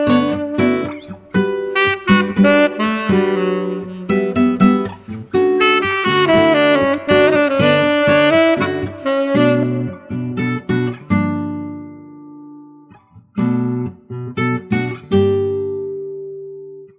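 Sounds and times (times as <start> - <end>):
smooth saxophone: 0.0 - 10.9
guitar: 0.0 - 16.9.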